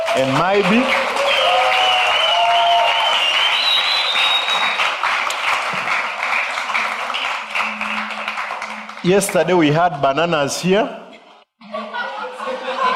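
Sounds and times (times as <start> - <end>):
audience applause greeting guests: 0.0 - 9.7
speech: 0.2 - 1.0, 9.0 - 11.0
laughter: 11.0 - 12.9.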